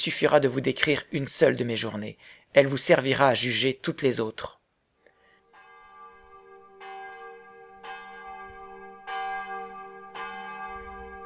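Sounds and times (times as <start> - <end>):
speech: 0.0 - 4.6
church bell ringing for matins: 5.4 - 11.2.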